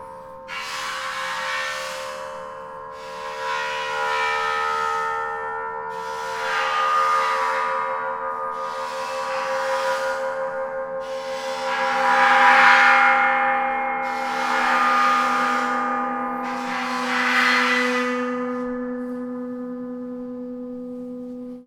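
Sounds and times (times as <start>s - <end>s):
bowed cymbals: 0.0s - 21.6s.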